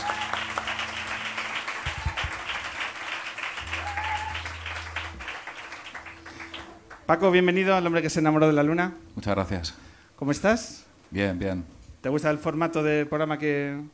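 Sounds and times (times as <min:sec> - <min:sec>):
audience applause: 0:00.0 - 0:07.1
speech: 0:07.1 - 0:13.9.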